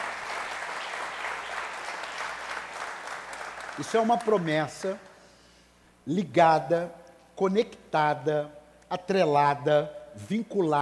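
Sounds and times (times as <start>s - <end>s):
audience applause: 0.0s - 4.9s
speech: 3.8s - 5.1s, 6.1s - 10.8s.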